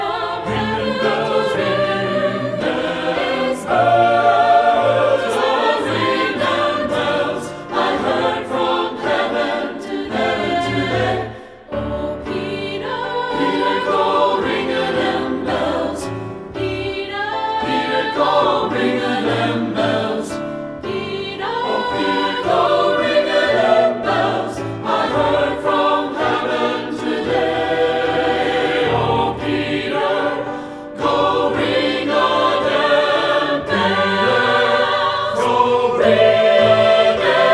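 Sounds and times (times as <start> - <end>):
SATB choir singing: 0.0 - 37.5.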